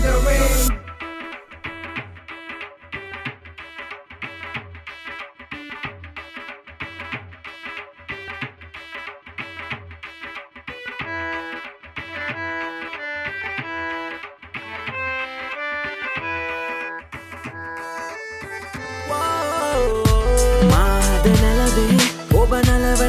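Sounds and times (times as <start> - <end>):
Sinhala rap song: 0.0 - 1.4, 19.0 - 23.0.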